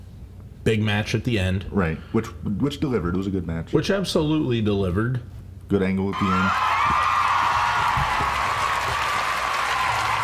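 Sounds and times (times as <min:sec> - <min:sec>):
speech: 0:00.7 - 0:07.0
soundboard crowd cheering effect: 0:06.2 - 0:10.2.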